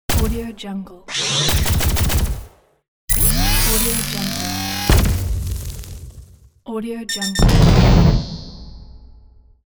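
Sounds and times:
energy weapons: 0.1s - 0.5s, 1.1s - 2.5s, 3.1s - 6.5s.

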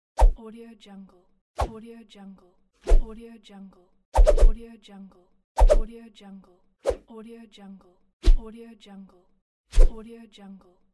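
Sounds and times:
swishes: 4.2s - 4.6s, 5.6s - 5.8s, 9.7s - 10.0s.

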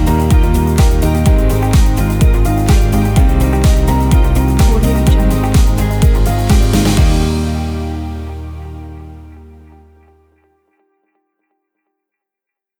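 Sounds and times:
uplifting corporate music: 0.0s - 10.0s.

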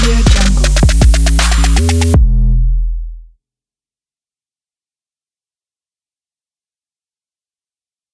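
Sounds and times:
trap beat: 0.0s - 3.2s.

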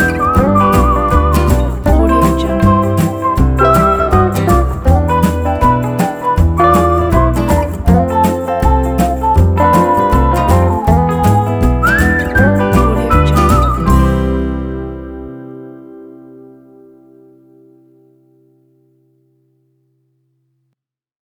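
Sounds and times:
country jazzy swing music: 0.0s - 16.4s.

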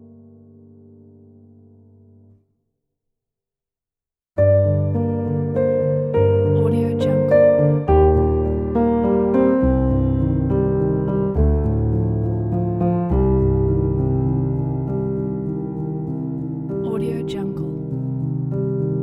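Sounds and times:
emotional sad epic piano music: 4.4s - 19.0s.

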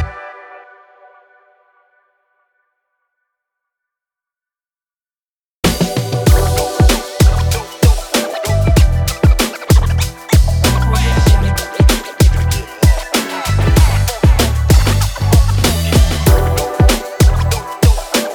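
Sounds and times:
hip hop urban logo intro: 5.8s - 18.3s.

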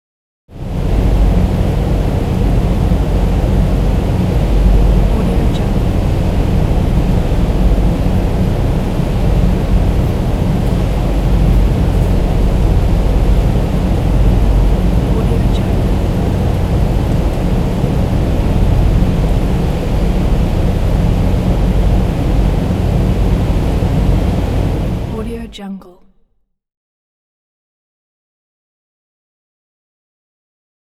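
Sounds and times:
hydroelectric plant background noise: 0.5s - 26.0s.

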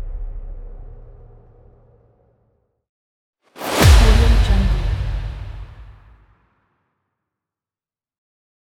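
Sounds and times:
cinematic hits: 3.6s - 6.1s.

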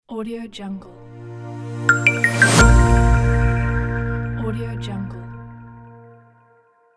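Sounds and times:
clean corporate logo jingle: 1.0s - 6.3s.

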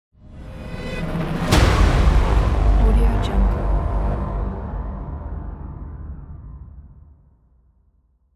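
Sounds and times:
cinematic trailer drums: 1.0s - 7.1s.

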